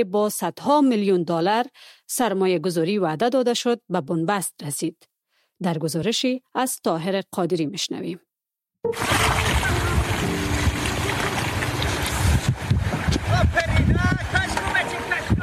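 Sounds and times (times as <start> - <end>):
speech: 0.0 - 9.7
Amu river water flowing: 8.9 - 15.3.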